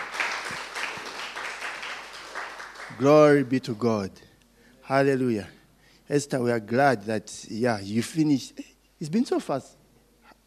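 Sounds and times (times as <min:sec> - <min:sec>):
audience applause and hand clapping: 0:00.0 - 0:03.4
speech: 0:03.0 - 0:04.3, 0:04.9 - 0:09.8.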